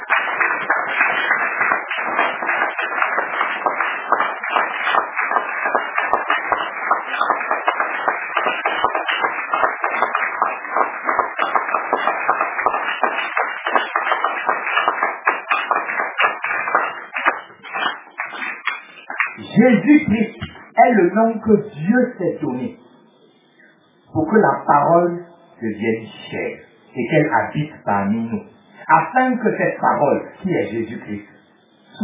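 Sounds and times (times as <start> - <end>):
audience applauding: 0.0 - 20.6
speech: 19.6 - 20.4, 21.2 - 22.8, 24.3 - 31.4.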